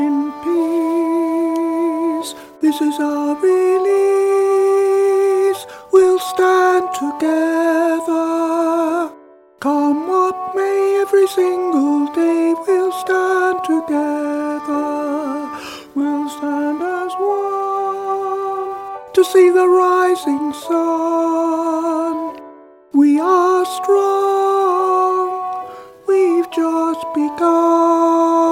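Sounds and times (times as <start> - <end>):
alto voice: 0.0 - 28.5.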